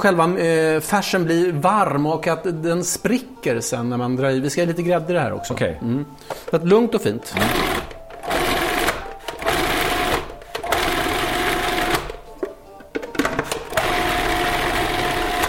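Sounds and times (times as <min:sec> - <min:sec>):
speech: 0:00.0 - 0:07.8
electric mixer blending tortellini meat filling with cream: 0:07.3 - 0:12.2, 0:13.5 - 0:15.4.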